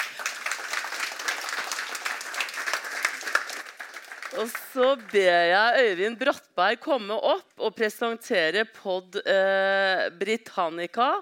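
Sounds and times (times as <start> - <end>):
audience applause: 0.0 - 5.2
speech: 4.3 - 11.2.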